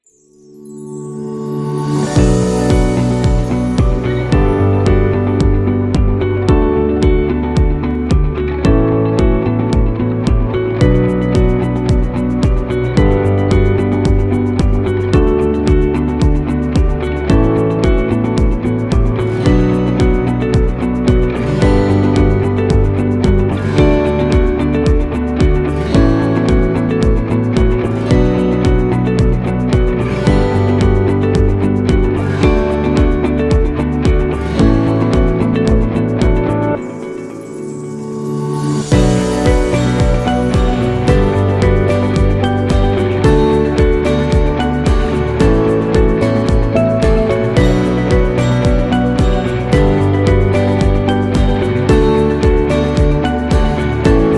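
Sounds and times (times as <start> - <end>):
motivational medical corporate music: 0.0 - 54.3.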